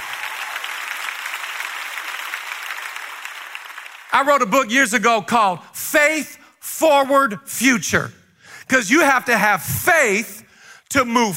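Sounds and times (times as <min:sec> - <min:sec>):
large crowd clapping: 0:00.0 - 0:04.5
speech: 0:04.2 - 0:11.3.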